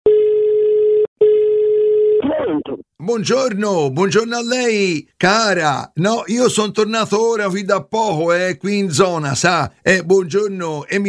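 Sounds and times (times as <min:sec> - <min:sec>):
telephone line tone while a call is placed to people in Tuscany: 0:00.1 - 0:02.2
speech: 0:02.2 - 0:11.0.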